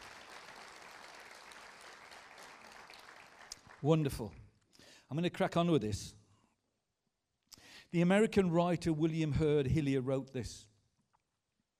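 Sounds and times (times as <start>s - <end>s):
round of applause: 0.0s - 4.4s
speech: 3.8s - 4.4s, 5.1s - 6.2s, 7.9s - 10.7s.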